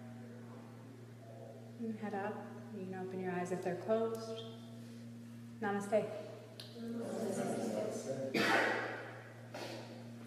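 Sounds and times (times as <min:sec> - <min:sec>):
speech: 0:01.8 - 0:04.6, 0:05.6 - 0:08.9
sneeze: 0:08.3 - 0:10.0.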